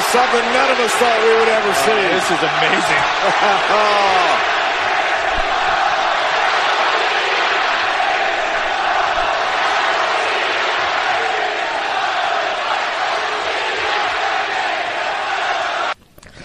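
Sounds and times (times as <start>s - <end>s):
laughter: 0.0s - 5.7s
wrestling crowd cheering: 0.0s - 16.0s
speech: 0.1s - 4.5s.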